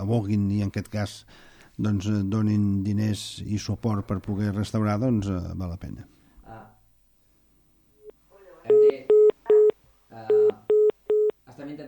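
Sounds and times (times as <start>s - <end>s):
speech: 0.1s - 6.7s, 11.6s - 11.8s
electronic telephone line beeps as a call comes in: 8.7s - 11.4s.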